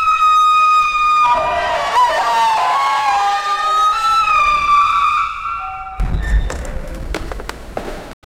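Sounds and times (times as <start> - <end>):
bunch of people screaming: 0.2 - 6.6.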